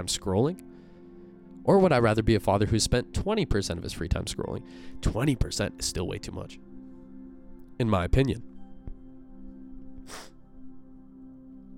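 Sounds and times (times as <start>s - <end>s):
speech: 0.0s - 0.7s, 1.6s - 6.7s, 7.8s - 8.5s, 10.1s - 10.3s
person sniffling: 10.0s - 10.4s.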